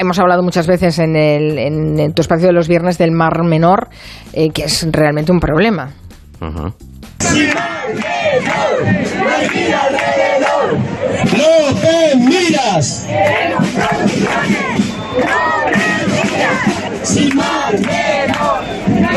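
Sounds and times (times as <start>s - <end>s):
speech: 0.0s - 19.1s
protest demonstration crowd chanting: 7.2s - 19.1s.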